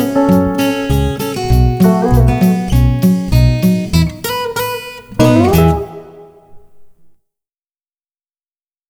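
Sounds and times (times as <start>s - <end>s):
instrumental music: 0.0s - 7.1s.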